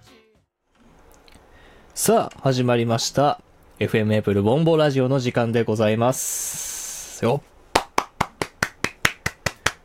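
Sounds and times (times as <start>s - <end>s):
speech: 2.0s - 6.6s, 7.2s - 7.5s
one person clapping alone in a radio booth: 7.7s - 9.8s.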